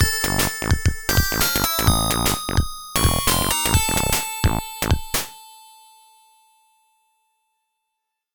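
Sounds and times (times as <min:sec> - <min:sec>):
FM synth music on OPL3 chip: 0:00.2 - 0:05.3.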